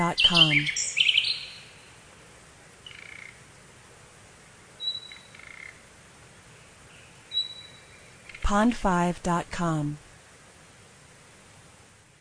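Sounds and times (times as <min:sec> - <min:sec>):
speech: 0:00.0 - 0:00.8, 0:08.5 - 0:10.0
birds calling: 0:00.0 - 0:02.0, 0:02.8 - 0:03.4, 0:04.8 - 0:05.8, 0:06.5 - 0:08.5
constant hiss: 0:00.0 - 0:12.2.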